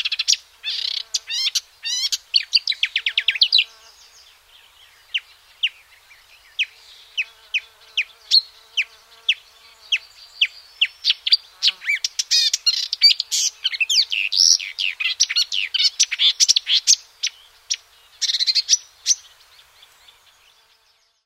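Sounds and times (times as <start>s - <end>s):
marsh warbler singing: 0.1s - 21.2s.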